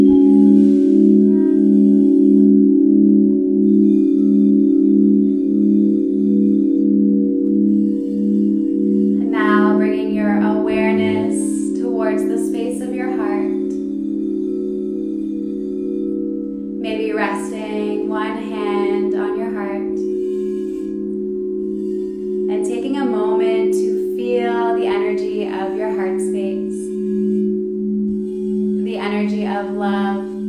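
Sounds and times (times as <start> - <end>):
large crystal alchemy bowls ringing: 0.0 - 30.4.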